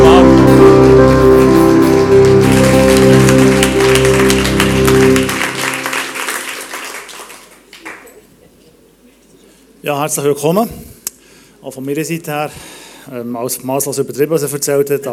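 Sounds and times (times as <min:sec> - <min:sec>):
audience applause for speaker on stage: 0:00.0 - 0:08.3
speech: 0:10.0 - 0:10.9, 0:11.6 - 0:15.1.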